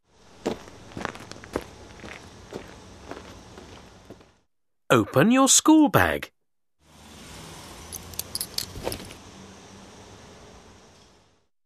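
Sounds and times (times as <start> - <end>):
footsteps of someone walking to school: 0.4 - 4.4
speech: 4.9 - 6.4.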